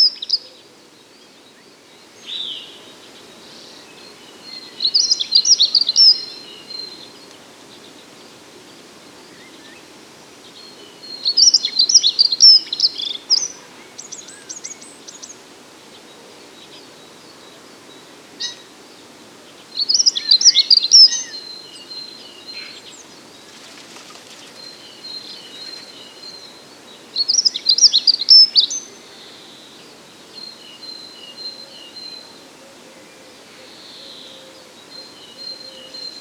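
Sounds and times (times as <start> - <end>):
dunnock singing: 0.0 - 8.0, 10.5 - 15.4, 19.6 - 36.2.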